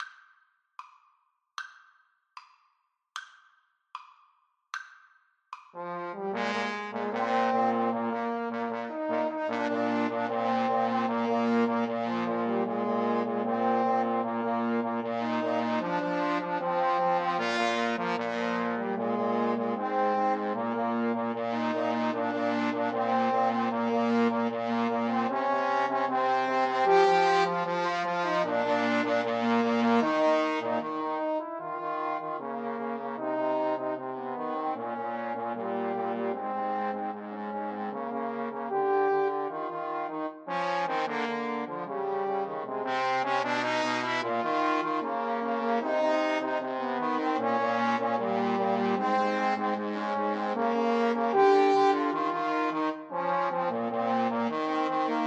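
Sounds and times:
trombone trio: 5.8 - 55.2.

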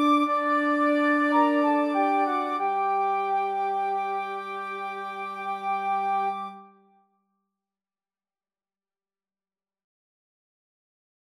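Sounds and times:
flute choir: 0.0 - 6.9.

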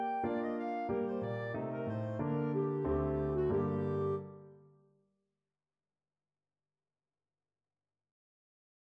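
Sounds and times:
clarinet: 0.0 - 4.6.

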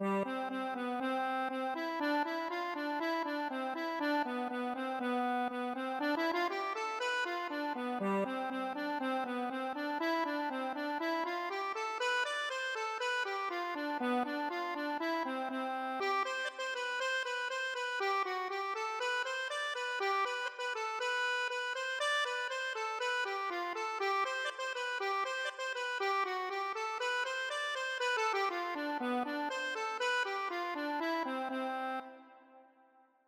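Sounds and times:
accordion: 0.0 - 32.7.

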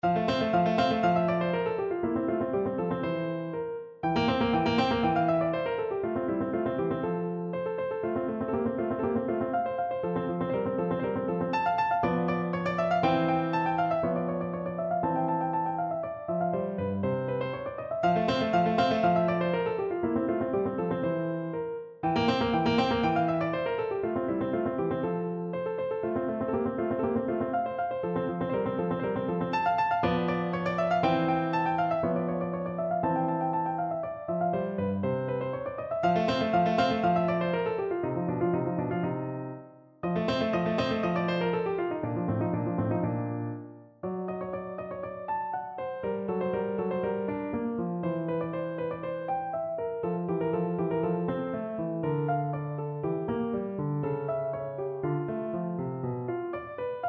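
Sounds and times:
piano: 0.0 - 57.0.

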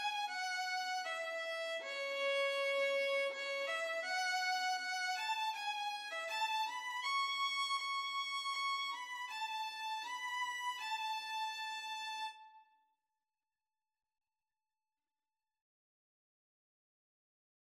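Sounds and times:
violin and cello duet: 0.0 - 12.3.

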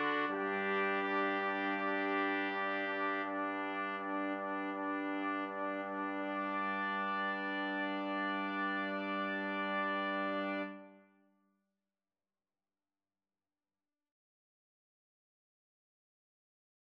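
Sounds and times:
two trumpets and trombone playing a pavane: 0.0 - 10.9.

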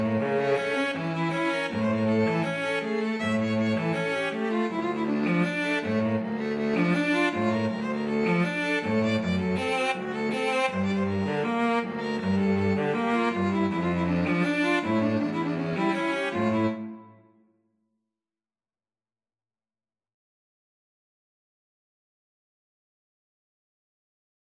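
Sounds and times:
violin and cello duet: 0.0 - 17.1.

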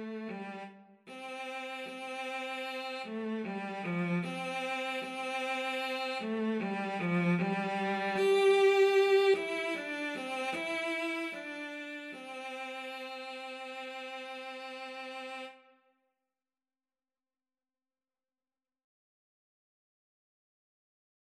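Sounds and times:
cello duet: 0.0 - 15.6.

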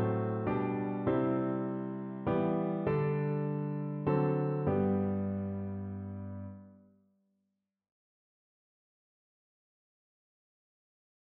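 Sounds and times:
piano: 0.0 - 7.0.

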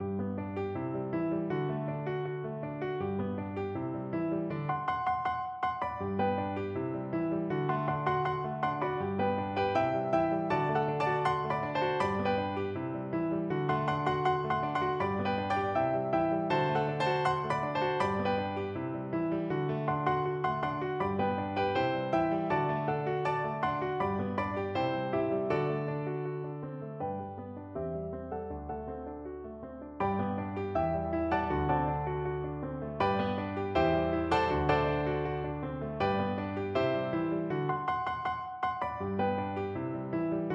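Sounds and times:
piano duet: 0.0 - 40.5.

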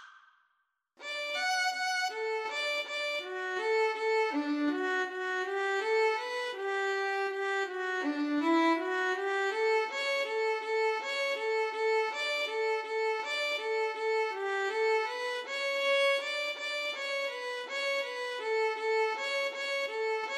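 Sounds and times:
violin duet: 1.0 - 20.3.

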